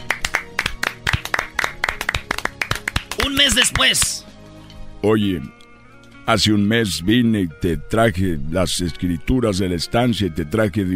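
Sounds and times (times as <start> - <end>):
applause: 0.0 - 4.2
speech: 3.3 - 4.3, 5.0 - 5.6, 6.3 - 10.9.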